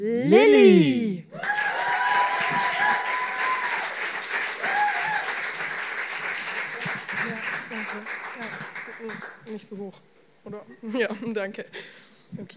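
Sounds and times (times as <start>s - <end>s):
speech: 0.0s - 1.0s, 9.6s - 12.5s
whoops and cheering voices: 0.3s - 5.5s
crowd applauding welcoming a poet: 1.3s - 9.5s.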